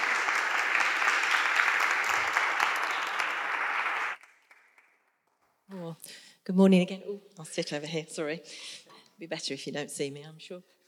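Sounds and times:
audience applause as a speaker comes up: 0.0s - 5.0s
speech: 6.1s - 10.8s.

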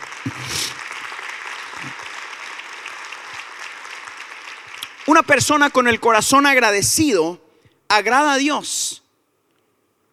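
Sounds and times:
crowd clapping: 0.0s - 6.6s
speech: 0.2s - 0.8s, 1.8s - 2.0s, 5.0s - 9.0s.

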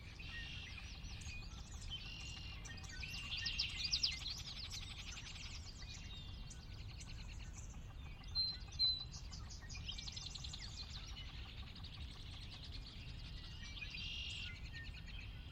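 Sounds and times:
birdsong chirping in Sinlahekin Valley at post-dawn: 0.0s - 15.5s.

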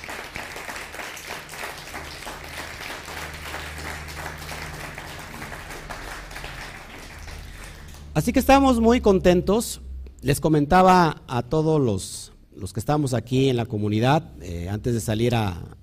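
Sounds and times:
audience applause: 0.0s - 8.2s
speech: 8.2s - 15.8s.

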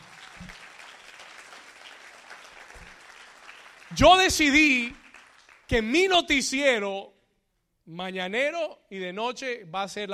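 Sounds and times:
audience applause: 0.0s - 5.7s
speech: 3.9s - 5.0s, 5.7s - 7.1s, 7.9s - 10.1s.

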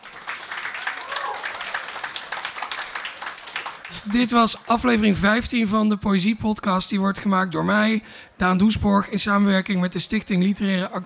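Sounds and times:
live audience clapping: 0.0s - 5.2s
faint cheer: 0.3s - 2.5s
speech: 3.9s - 11.0s.

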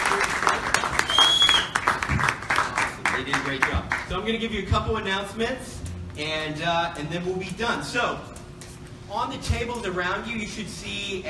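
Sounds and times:
round of applause: 0.0s - 4.1s
speech: 4.1s - 8.3s, 9.1s - 11.2s.

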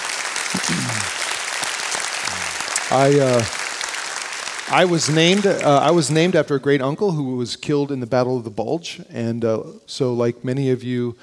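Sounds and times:
crowd applause: 0.0s - 6.3s
voices calling out over applause: 0.6s - 1.1s
speech: 2.9s - 3.6s, 4.7s - 11.2s.

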